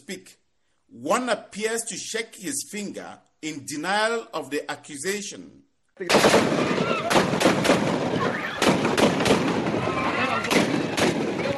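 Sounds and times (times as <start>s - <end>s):
speech: 0.1s - 8.4s
rapid gunfire from armed men: 6.1s - 11.5s
people shouting: 6.4s - 8.9s, 9.6s - 11.5s.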